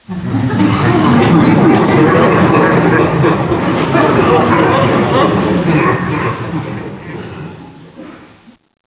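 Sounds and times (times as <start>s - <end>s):
person laughing: 0.4s - 7.0s.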